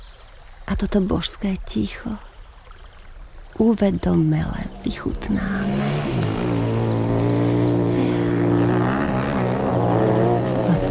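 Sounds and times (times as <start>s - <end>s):
speech: 0.7s - 2.3s, 3.6s - 6.3s
motorcycles roaring past: 4.7s - 10.8s.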